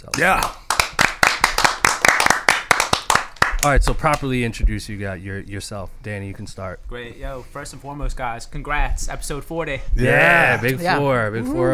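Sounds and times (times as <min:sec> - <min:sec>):
round of applause: 0:00.0 - 0:04.2
speech: 0:00.1 - 0:00.6, 0:03.6 - 0:11.7.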